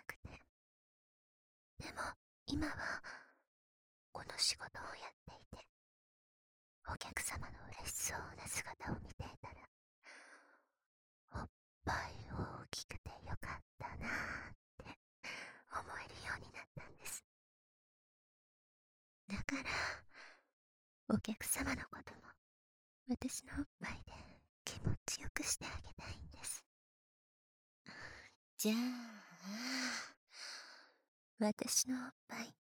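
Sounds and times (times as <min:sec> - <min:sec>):
whispering in the ear: 0:00.0 - 0:00.4, 0:01.8 - 0:03.0, 0:04.2 - 0:05.7, 0:06.9 - 0:09.7, 0:11.4 - 0:14.0, 0:15.6 - 0:17.2, 0:19.3 - 0:19.9, 0:21.1 - 0:22.4, 0:23.1 - 0:26.6, 0:27.9 - 0:29.5, 0:31.4 - 0:32.6.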